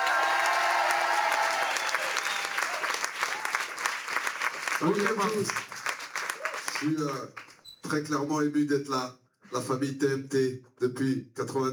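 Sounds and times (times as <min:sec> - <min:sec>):
live show audience applause and cheering for a guest performer: 0:00.0 - 0:07.6
speech: 0:04.8 - 0:05.7, 0:06.8 - 0:11.7.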